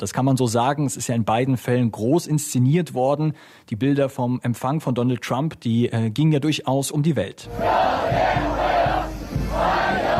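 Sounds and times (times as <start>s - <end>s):
speech: 0.0s - 8.7s
dozens of young Chinese people chanting a welcome on the runway at Beijing airport: 7.4s - 10.1s.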